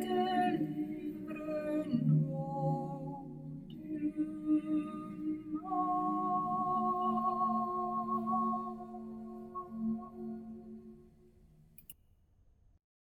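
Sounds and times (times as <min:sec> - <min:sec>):
choir of sopranos singing: 0:00.0 - 0:11.3.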